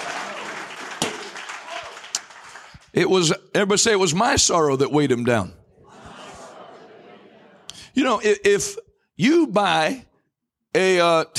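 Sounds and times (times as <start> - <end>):
audience clapping hands: 0.0 - 3.0
speech: 2.9 - 5.6, 8.0 - 10.1, 10.7 - 11.3
laughter: 5.8 - 8.0.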